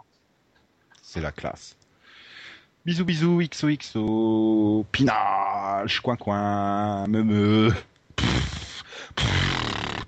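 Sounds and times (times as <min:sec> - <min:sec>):
speech: 0:01.1 - 0:01.8, 0:02.8 - 0:08.4
person imitating a horse: 0:07.3 - 0:10.0.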